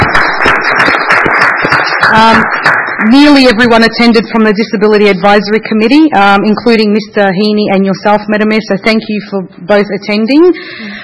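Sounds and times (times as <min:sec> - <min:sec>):
applause at a city council meeting: 0:00.0 - 0:03.6
speech: 0:02.1 - 0:02.5, 0:03.1 - 0:11.0.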